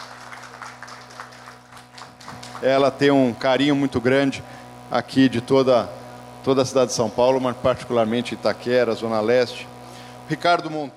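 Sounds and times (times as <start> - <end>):
audience applause: 0.0 - 2.8
speech: 2.6 - 9.7, 10.3 - 10.9.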